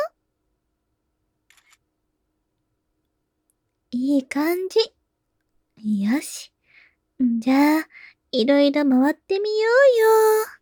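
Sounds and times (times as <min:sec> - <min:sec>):
camera shutter taking a photo: 0:01.5 - 0:01.8
speech: 0:03.9 - 0:05.0, 0:05.8 - 0:06.5, 0:07.2 - 0:10.6.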